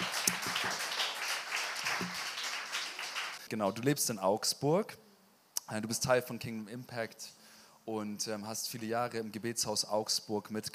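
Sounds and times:
audience applause: 0.0s - 3.4s
speech: 3.5s - 5.0s, 5.7s - 10.7s.

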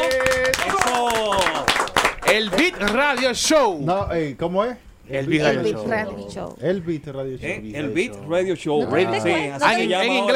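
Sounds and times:
applause: 0.0s - 3.5s
speech: 2.3s - 10.3s.

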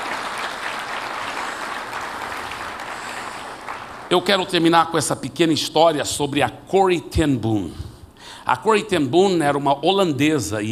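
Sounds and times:
crowd clapping: 0.0s - 4.7s
speech: 4.1s - 7.8s, 8.5s - 10.7s.

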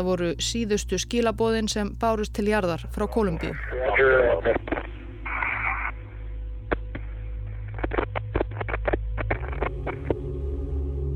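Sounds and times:
speech: 0.0s - 4.8s
steady low electrical hum: 0.0s - 11.0s
garbled band-limited radio voice: 3.0s - 6.0s
radio hiss and irregular crackles: 3.0s - 10.2s.

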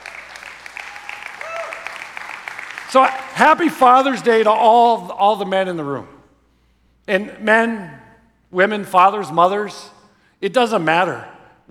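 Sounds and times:
round of applause: 0.0s - 3.6s
speech: 2.9s - 6.1s, 7.1s - 11.6s.

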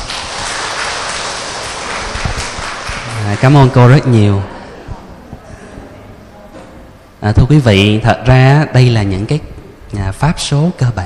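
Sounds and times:
audience applause: 0.0s - 3.8s
speech: 3.3s - 4.5s, 7.2s - 11.0s.

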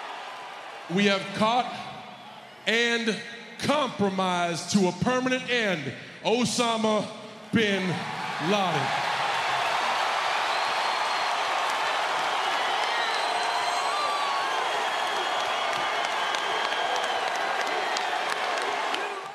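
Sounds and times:
large crowd applauding: 0.0s - 1.0s, 8.1s - 19.3s
speech: 0.9s - 1.9s, 2.6s - 9.0s.

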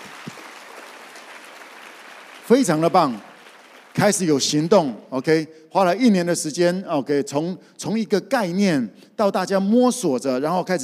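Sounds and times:
audience applause: 0.0s - 4.6s
speech: 2.5s - 3.3s, 4.0s - 10.8s.

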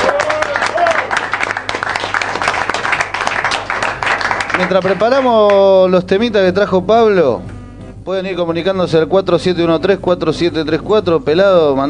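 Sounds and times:
crowd cheering: 0.0s - 5.3s
audience applause: 0.0s - 5.6s
speech: 4.6s - 11.8s.

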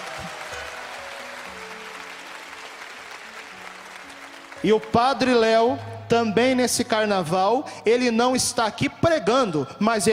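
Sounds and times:
loud round of applause: 0.0s - 5.0s
speech: 4.6s - 10.1s.

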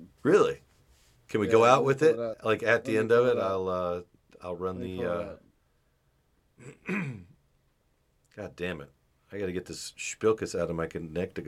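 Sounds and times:
speech: 0.2s - 0.6s, 1.3s - 5.4s, 6.6s - 7.3s, 8.4s - 11.4s
man clearing throat: 6.6s - 7.4s.

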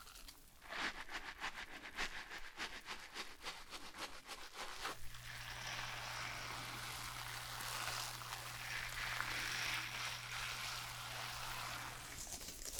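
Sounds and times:
hair brushing: 0.9s - 12.7s
shampooing hair: 3.6s - 12.7s.

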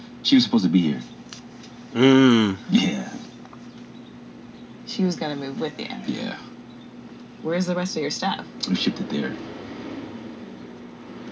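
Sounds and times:
speech: 0.2s - 1.2s, 1.9s - 3.3s, 5.0s - 6.5s, 7.4s - 9.5s
loud garbage truck passing outside: 8.5s - 11.2s.

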